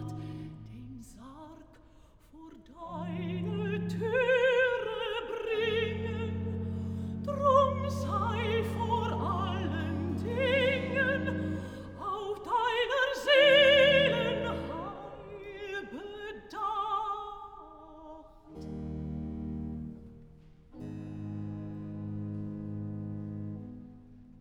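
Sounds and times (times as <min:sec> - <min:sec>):
alto singing cantata recitative: 0:02.8 - 0:17.6.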